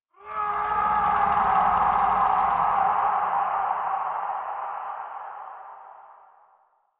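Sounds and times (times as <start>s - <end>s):
distant medium howl: 0.2s - 6.6s.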